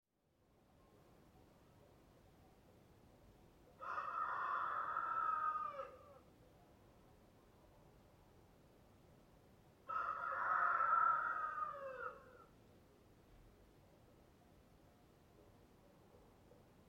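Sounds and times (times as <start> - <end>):
rooster crowing cock-a-doodle-doo: 3.8 - 6.2, 9.9 - 12.5.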